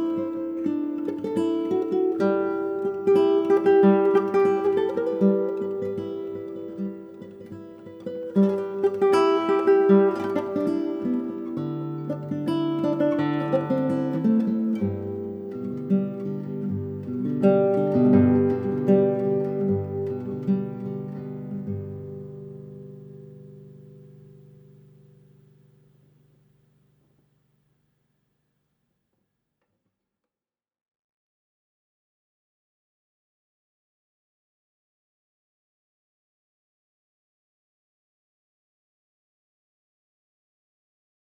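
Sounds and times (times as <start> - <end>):
classical guitar Christmas music: 0.0 - 27.1.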